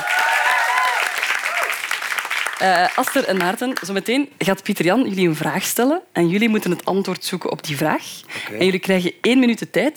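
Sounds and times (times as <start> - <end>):
audience applause: 0.0 - 3.2
speech: 2.6 - 9.9.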